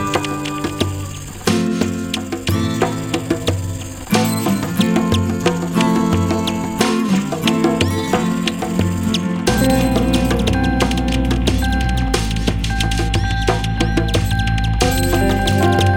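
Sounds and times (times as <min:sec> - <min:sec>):
djembe drumming: 0:00.2 - 0:15.9.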